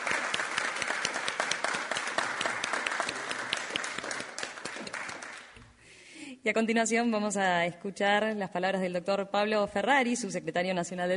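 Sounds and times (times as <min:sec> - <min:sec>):
audience applause after document signing: 0:00.0 - 0:05.6
speech: 0:06.4 - 0:11.1.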